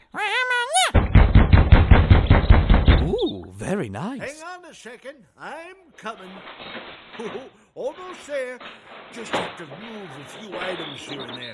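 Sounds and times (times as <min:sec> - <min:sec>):
knocks on a wooden door in a cartoon scene: 0:01.0 - 0:03.0
speech: 0:03.8 - 0:11.5.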